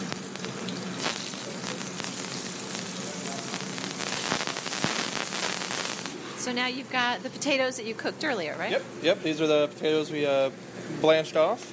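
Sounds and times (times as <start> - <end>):
shrimp sizzling in a hot pan: 0.0 - 6.3
speech: 6.5 - 11.7.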